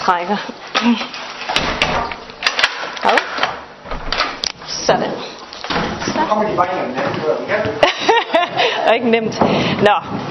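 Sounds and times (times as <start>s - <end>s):
speech: 0.1s - 2.1s, 4.9s - 5.1s, 6.3s - 7.8s, 8.9s - 10.3s
door being closed: 1.1s - 4.7s, 5.6s - 6.2s
laughter: 7.8s - 9.0s.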